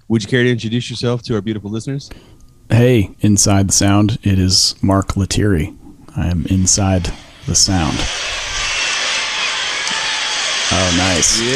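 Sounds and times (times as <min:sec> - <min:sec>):
speech: 0:00.1 - 0:08.2, 0:10.7 - 0:11.5
crowd noise sound effect: 0:07.0 - 0:11.5.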